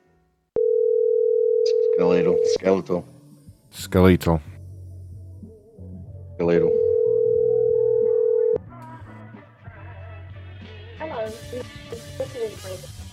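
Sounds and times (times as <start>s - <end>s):
phone ringing unanswered during a call: 0.6s - 2.6s, 6.6s - 8.6s
speech: 2.0s - 4.5s, 6.4s - 6.7s.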